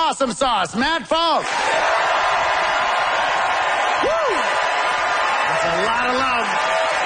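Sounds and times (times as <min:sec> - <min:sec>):
speech: 0:00.1 - 0:02.5, 0:05.6 - 0:06.8
crowd applauding: 0:01.4 - 0:07.0
whoops and shouts from the crowd: 0:03.8 - 0:07.0.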